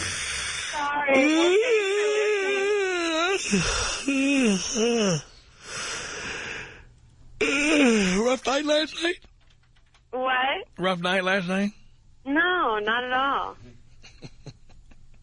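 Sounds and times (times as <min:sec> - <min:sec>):
person yawning: 0:00.0 - 0:05.3, 0:07.4 - 0:08.2
speech: 0:01.0 - 0:01.8, 0:03.5 - 0:05.3, 0:08.4 - 0:09.3, 0:10.1 - 0:13.7.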